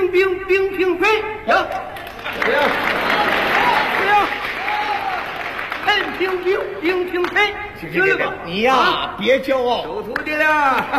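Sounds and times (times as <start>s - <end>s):
speech: 0.1s - 3.3s, 5.8s - 10.9s
audience applause: 2.0s - 6.5s.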